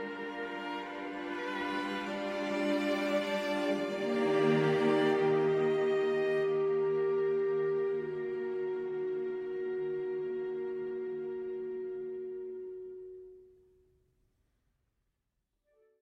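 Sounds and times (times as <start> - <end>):
classical piece for violin and orchestra: 0.0 - 12.5.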